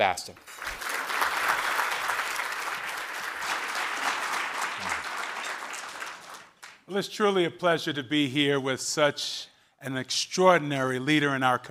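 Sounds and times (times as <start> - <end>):
speech: 0.0 - 0.6, 6.9 - 11.6
audience applause at a City Club of Cleveland forum: 0.5 - 6.8.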